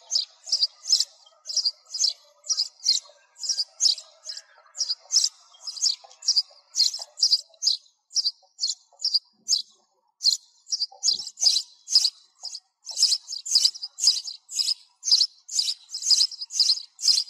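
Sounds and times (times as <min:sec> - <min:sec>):
sparrow chirping: 0:00.0 - 0:17.2.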